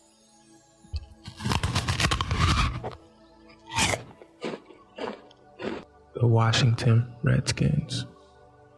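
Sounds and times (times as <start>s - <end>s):
pretzel being cracked: 1.1s - 3.0s
speech: 6.2s - 8.1s.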